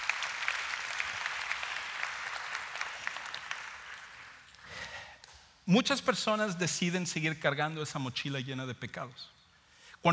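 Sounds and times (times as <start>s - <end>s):
applause: 0.0s - 5.1s
speech: 5.7s - 9.4s.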